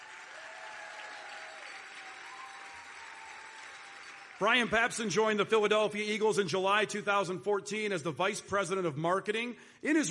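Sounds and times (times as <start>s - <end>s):
audience applauding: 0.0s - 5.2s
speech: 4.4s - 10.0s.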